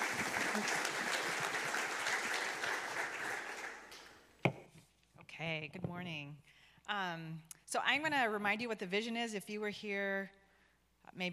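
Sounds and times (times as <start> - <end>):
audience applause welcoming a speaker to the stage: 0.0 - 4.2
speech: 5.4 - 10.4, 11.1 - 11.3.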